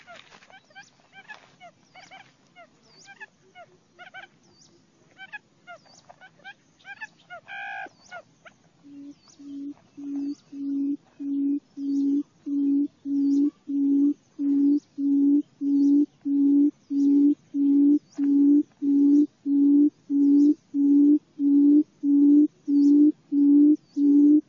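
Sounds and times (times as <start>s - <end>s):
quail producing a low booming hoot: 8.9s - 24.4s.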